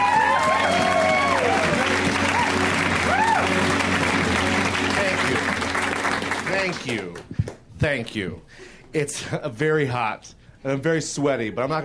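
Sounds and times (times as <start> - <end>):
comedy club audience voices whooping and cheering: 0.0 - 4.3
comedy club audience applauding a comedian coming on stage: 0.0 - 8.3
speech: 7.8 - 11.8.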